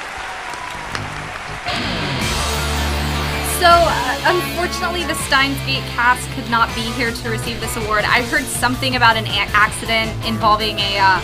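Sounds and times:
roaring applause: 0:00.0 - 0:05.6
speech: 0:03.6 - 0:11.2.

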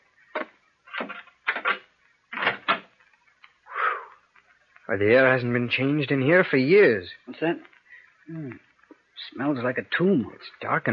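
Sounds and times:
wooden door being opened: 0:00.4 - 0:03.0
speech: 0:04.9 - 0:07.7, 0:08.3 - 0:10.9.

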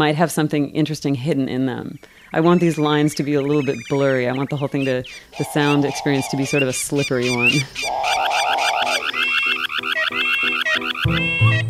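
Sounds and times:
speech: 0:00.0 - 0:08.4
several car alarms: 0:09.1 - 0:11.6.

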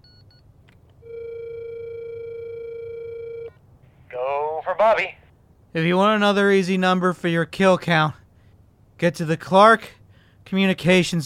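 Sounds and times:
phone call ringing on speakerphone: 0:01.0 - 0:03.5
speech: 0:04.7 - 0:08.2, 0:09.0 - 0:11.2.

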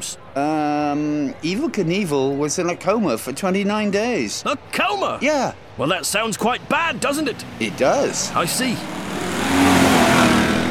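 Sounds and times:
speech: 0:00.4 - 0:09.0
monster truck engines revving: 0:05.8 - 0:10.6.

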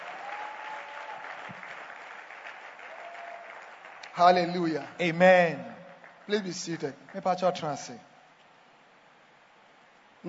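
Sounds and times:
audience clapping: 0:00.0 - 0:07.9
speech: 0:04.2 - 0:08.1.

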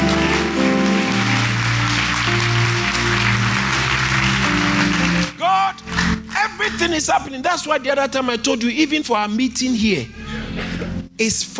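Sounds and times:
crowd clapping: 0:00.0 - 0:07.4
speech: 0:06.8 - 0:10.3, 0:11.2 - 0:11.5.

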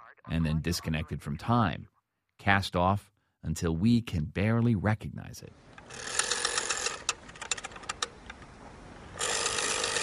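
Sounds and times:
speech: 0:00.3 - 0:06.2
rotary phone dial clicks: 0:05.8 - 0:08.5
rotary phone dial turning: 0:05.8 - 0:08.5, 0:09.1 - 0:10.0.

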